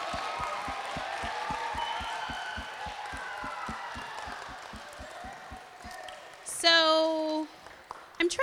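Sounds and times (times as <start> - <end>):
fast regular thumping beat: 0.0 - 6.0
crowd clapping and cheering: 0.0 - 8.3.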